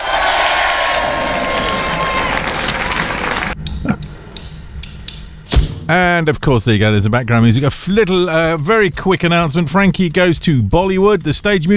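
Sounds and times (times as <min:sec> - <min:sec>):
crowd cheering sound effect: 0:00.0 - 0:03.6
speech: 0:05.9 - 0:11.7.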